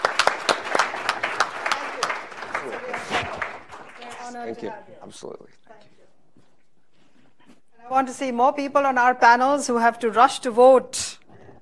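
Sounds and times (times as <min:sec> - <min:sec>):
audience applause: 0:00.0 - 0:04.7
speech: 0:04.4 - 0:06.2, 0:07.8 - 0:11.1.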